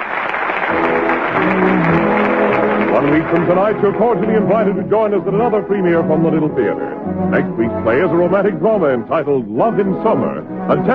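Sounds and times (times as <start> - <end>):
theater audience ovation applause: 0.0 - 5.3
speech: 3.0 - 10.9.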